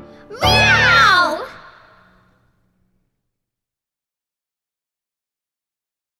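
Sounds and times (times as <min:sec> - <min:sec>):
finale vocals: 0:00.2 - 0:02.1.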